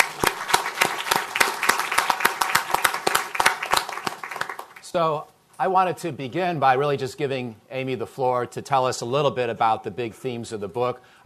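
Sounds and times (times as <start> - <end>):
audience applause welcoming a guest speaker at a Brookings event: 0.0 - 4.8
speech: 4.9 - 11.2.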